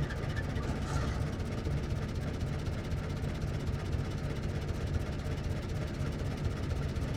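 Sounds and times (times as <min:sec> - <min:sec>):
1924 Ford stake bed truck engine starting: 0:00.0 - 0:02.2
1924 Ford stake bed truck driving away: 0:00.0 - 0:02.5
1924 Ford stake bed truck idling: 0:00.0 - 0:07.0.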